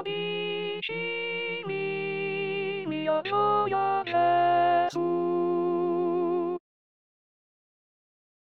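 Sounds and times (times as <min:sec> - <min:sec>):
contralto voices singing: 0:00.0 - 0:06.4.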